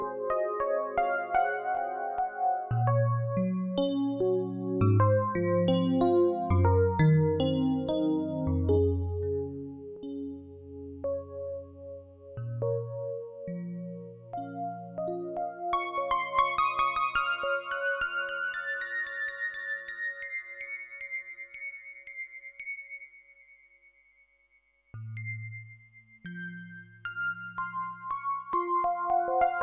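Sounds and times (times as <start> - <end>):
electric piano: 0.0 - 20.4, 27.1 - 29.6.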